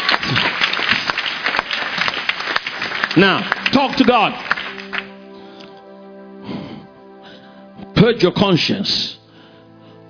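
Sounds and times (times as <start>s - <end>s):
audience clapping: 0.0s - 5.8s
speech: 3.2s - 4.5s, 8.0s - 9.2s.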